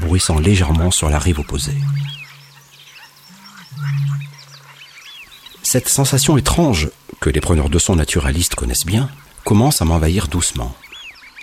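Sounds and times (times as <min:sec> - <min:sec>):
frogs croaking: 0:00.0 - 0:11.4
speech: 0:00.1 - 0:02.2, 0:05.7 - 0:10.9
high chirps and twitters: 0:00.4 - 0:06.6.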